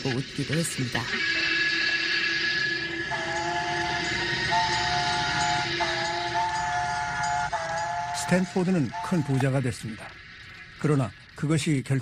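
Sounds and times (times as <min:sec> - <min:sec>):
speech: 0:00.0 - 0:01.4, 0:08.3 - 0:10.2, 0:10.8 - 0:12.0
steam train rumbling: 0:00.0 - 0:12.0
steam train whistle: 0:01.2 - 0:09.6.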